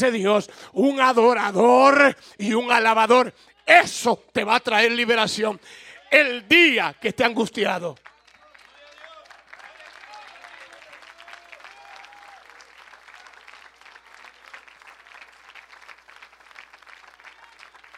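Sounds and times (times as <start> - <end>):
speech: 0.0 - 8.1
audience applauding: 7.8 - 17.9.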